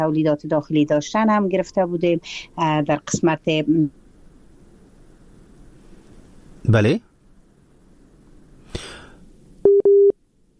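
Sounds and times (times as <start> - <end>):
speech: 0.0 - 4.0, 6.6 - 7.1
phone busy tone after a dropped call: 9.6 - 10.1.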